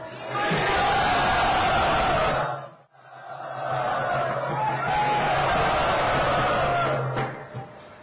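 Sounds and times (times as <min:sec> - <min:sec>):
crowd shouting and cheering at a Vaishnava gathering to welcome special guests: 0:00.0 - 0:07.3.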